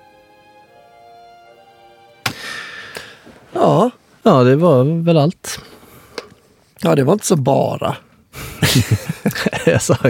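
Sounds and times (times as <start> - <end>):
reverb on its own: 2.2 - 3.2
speech: 3.6 - 5.7, 6.8 - 8.0, 8.7 - 10.0
laughter: 8.4 - 10.0.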